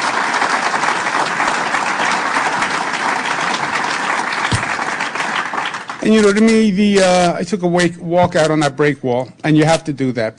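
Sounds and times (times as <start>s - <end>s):
crowd round of applause: 0.0s - 7.2s
speech: 6.0s - 10.3s.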